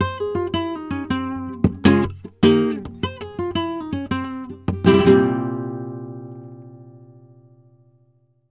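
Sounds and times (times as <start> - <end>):
flamenco guitar: 0.0 - 8.2.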